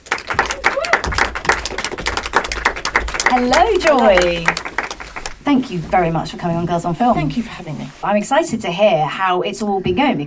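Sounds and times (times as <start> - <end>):
small audience clapping on a film talk show: 0.0 - 5.4
speech: 3.4 - 4.7, 5.5 - 10.2.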